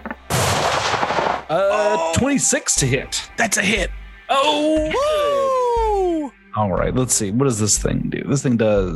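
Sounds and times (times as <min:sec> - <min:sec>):
mounted gun firing burst: 0:00.3 - 0:01.5
speech: 0:01.5 - 0:05.4, 0:06.6 - 0:08.9.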